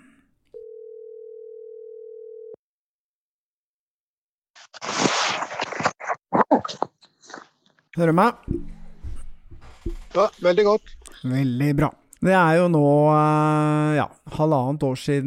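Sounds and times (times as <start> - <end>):
telephone ringback tone while placing a call: 0.6 - 2.6
crackling rustle: 4.6 - 6.2
speech: 8.0 - 8.7, 10.1 - 15.2.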